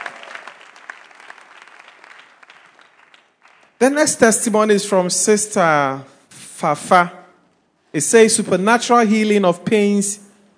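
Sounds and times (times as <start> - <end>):
crowd clapping: 0.0 - 4.0
speech: 3.8 - 7.2, 7.9 - 10.2.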